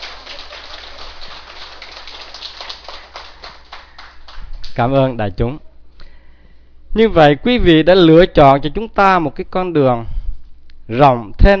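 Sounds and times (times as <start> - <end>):
audience applause: 0.0 - 4.7
speech: 4.8 - 5.7, 6.9 - 10.2, 10.9 - 11.5.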